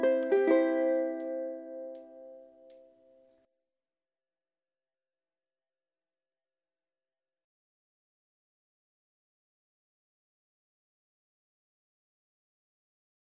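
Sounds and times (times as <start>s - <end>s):
ukulele playing slow up pattern: 0.0s - 2.8s.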